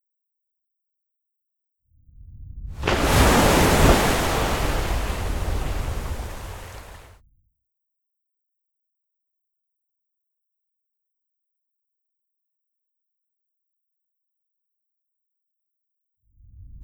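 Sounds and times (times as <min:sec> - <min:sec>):
Perito Moreno glacier calving: 0:02.8 - 0:07.1.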